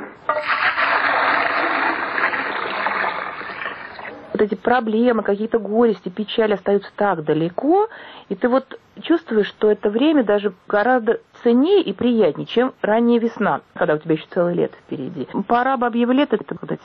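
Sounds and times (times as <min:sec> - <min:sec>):
drawing water from a well: 0:00.2 - 0:04.4
speech: 0:04.7 - 0:16.8.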